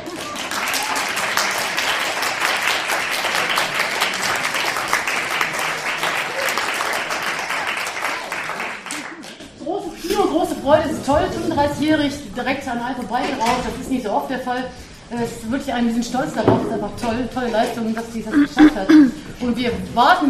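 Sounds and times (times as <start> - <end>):
audience applause: 0.0 - 9.4
speech: 10.7 - 20.2.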